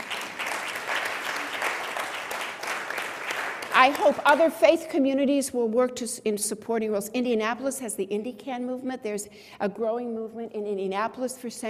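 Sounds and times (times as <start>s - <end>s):
audience clapping: 0.0s - 4.6s
speech: 3.8s - 11.6s.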